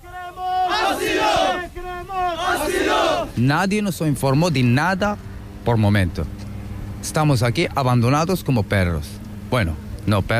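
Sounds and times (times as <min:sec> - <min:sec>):
crowd shouting a demand for asylum in unison: 0:00.0 - 0:03.4
speech: 0:03.3 - 0:06.4, 0:07.0 - 0:10.3.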